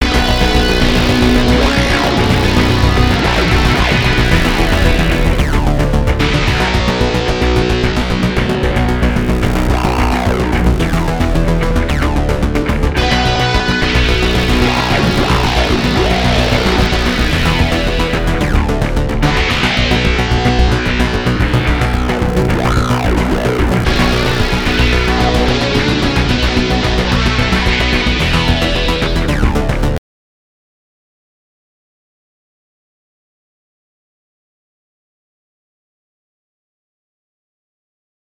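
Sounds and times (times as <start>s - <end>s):
ambient music loop: 0.0s - 30.0s.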